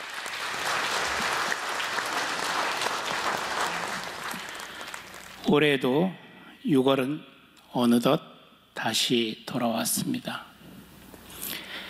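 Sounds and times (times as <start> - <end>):
audience applause: 0.0 - 5.4
speech: 5.5 - 10.5.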